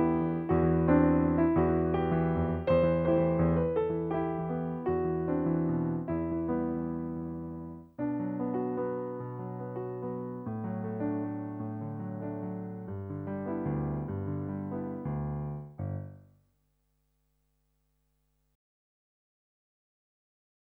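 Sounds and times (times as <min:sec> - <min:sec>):
solo piano song: 0:00.0 - 0:16.4.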